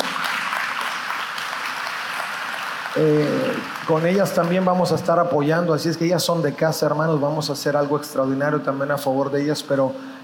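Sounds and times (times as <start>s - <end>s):
crowd clapping: 0.0s - 5.0s
speech: 3.0s - 10.2s.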